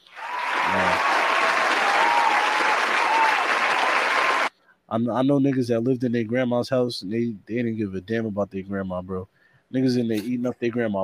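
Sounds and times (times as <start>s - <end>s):
applause: 0.0s - 4.5s
speech: 4.9s - 11.0s.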